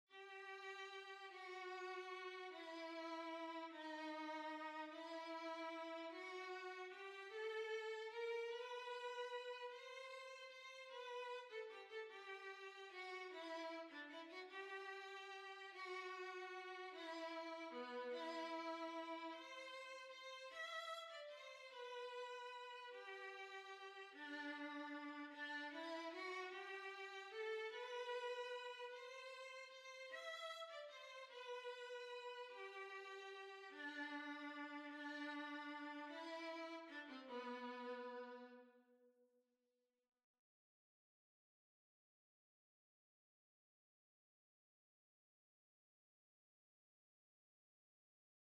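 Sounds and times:
violin waltz: 0:00.1 - 0:38.6.

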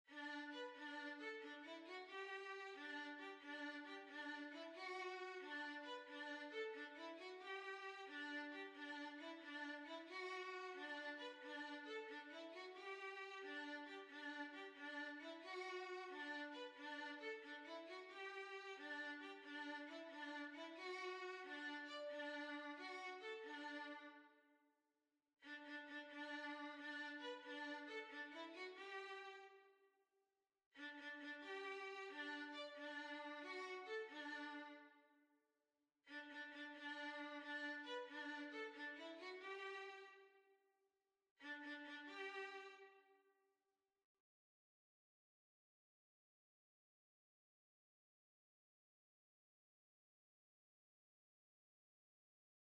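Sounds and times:
violin: 0:00.1 - 0:24.4, 0:25.4 - 0:29.7, 0:30.8 - 0:35.0, 0:36.1 - 0:40.4, 0:41.4 - 0:43.1.

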